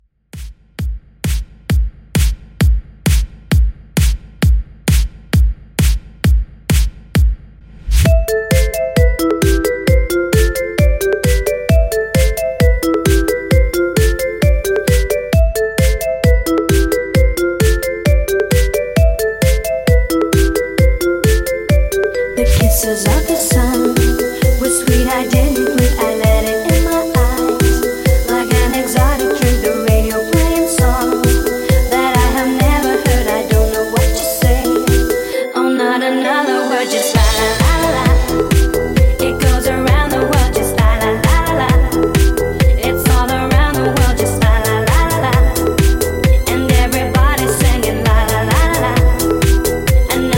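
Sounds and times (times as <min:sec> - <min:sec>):
throwback beat music: 0:00.4 - 0:50.3.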